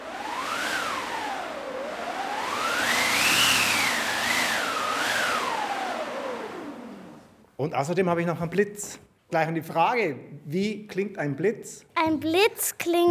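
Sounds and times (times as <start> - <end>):
wind machine whooshing: 0.0 - 7.4
speech: 7.6 - 13.0.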